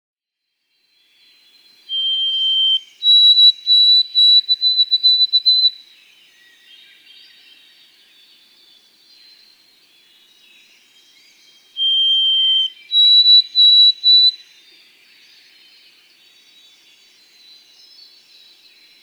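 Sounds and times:
white-throated sparrow whistled song: 1.9 - 5.8, 11.8 - 14.5.

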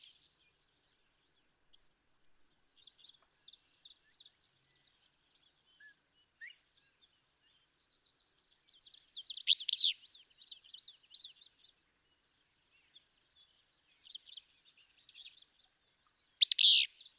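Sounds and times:
Willow Flycatcher calling: 9.4 - 10.0, 16.4 - 16.9.

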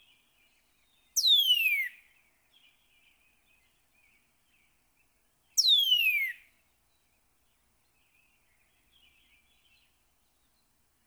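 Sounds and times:
Northern cardinal singing slurred whistles: 1.2 - 1.9, 5.6 - 6.4.

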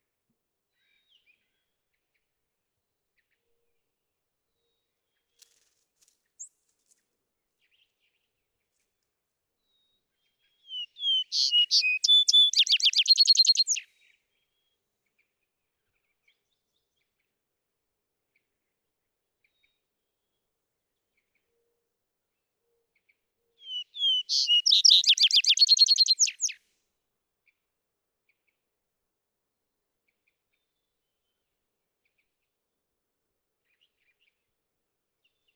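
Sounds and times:
vesper sparrow calling: 10.7 - 13.8, 23.6 - 26.6.

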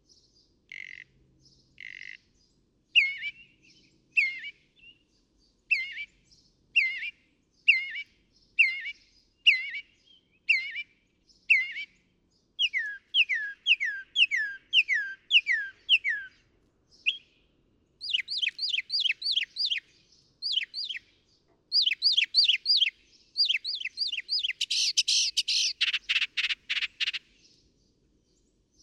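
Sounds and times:
northern mockingbird song: 3.0 - 5.0, 5.7 - 12.0, 12.6 - 16.4, 17.0 - 17.4, 18.0 - 27.2.

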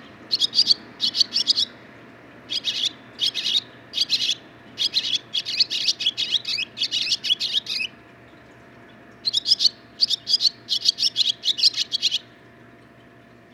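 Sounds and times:
barn swallow song: 0.0 - 1.8, 2.5 - 8.0, 9.2 - 12.4
faint hum: 0.0 - 13.5.

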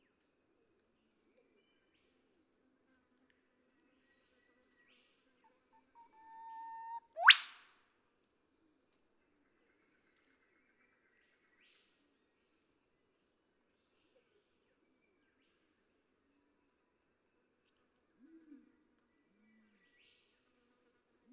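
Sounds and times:
Eastern whipbird whip-crack song: 6.4 - 7.8.

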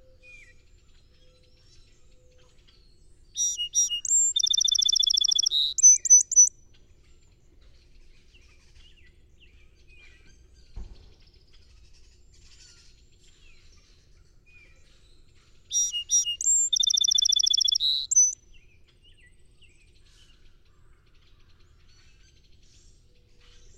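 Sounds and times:
song sparrow singing: 3.4 - 6.5, 15.7 - 18.4.

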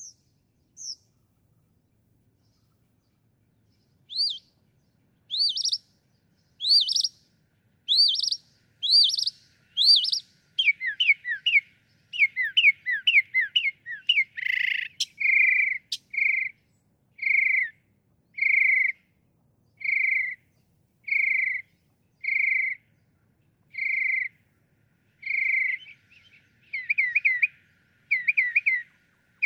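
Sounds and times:
northern mockingbird whistling: 0.8 - 1.0, 4.0 - 4.6, 5.3 - 5.9, 6.5 - 7.2, 7.8 - 16.6, 17.2 - 17.8, 18.4 - 19.1, 19.8 - 20.4, 21.1 - 22.8, 23.7 - 24.4, 25.2 - 29.4.

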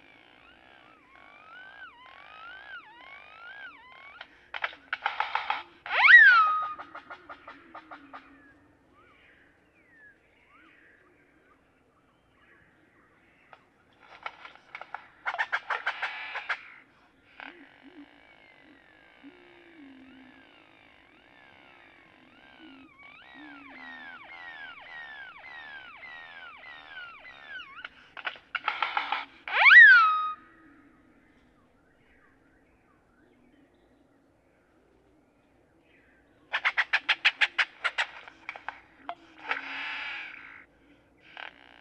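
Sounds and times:
Great-tailed grackle calls: 0.0 - 9.3, 13.4 - 31.8, 36.5 - 41.7
low hum: 0.0 - 36.5.

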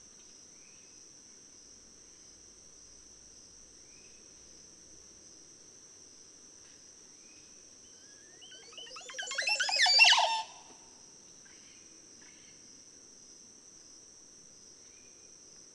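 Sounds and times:
Montezuma oropendola calling: 7.9 - 10.7.

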